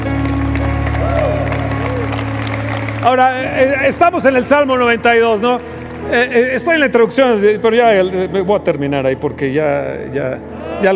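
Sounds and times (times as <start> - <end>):
applause: 0.0 - 7.2
speech: 3.0 - 10.9.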